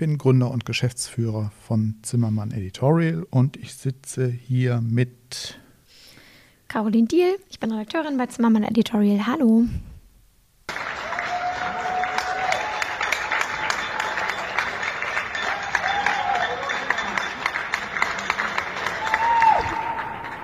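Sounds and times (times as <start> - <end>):
speech: 0.0 - 5.6, 6.7 - 9.9
audience applause: 10.7 - 20.4.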